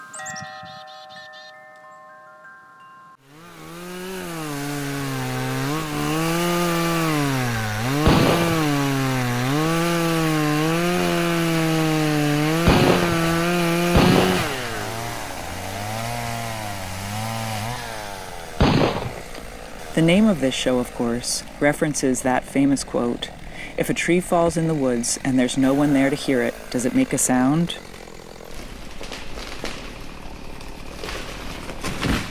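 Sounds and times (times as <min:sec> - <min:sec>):
chiming tone: 0:00.0 - 0:03.3
chainsaw cutting firewood: 0:03.2 - 0:32.2
sharp cracks: 0:07.4 - 0:09.6, 0:12.4 - 0:15.7, 0:17.7 - 0:21.9, 0:26.1 - 0:32.2
speech: 0:20.0 - 0:27.8.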